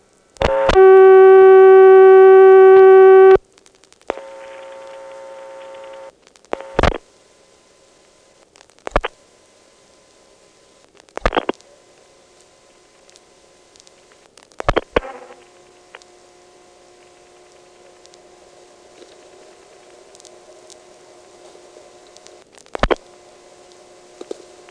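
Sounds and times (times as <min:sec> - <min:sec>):
telephone ringing tone on a line in Port Royal: 0:00.4 - 0:03.4
scattered clicks: 0:02.8 - 0:07.0, 0:08.4 - 0:09.2, 0:10.8 - 0:11.7, 0:12.4 - 0:16.1, 0:17.0 - 0:18.2, 0:21.4 - 0:24.7.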